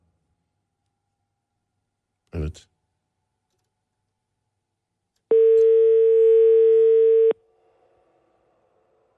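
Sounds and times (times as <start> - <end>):
speech: 2.4 - 2.7
telephone ringback tone while calling: 5.3 - 7.4.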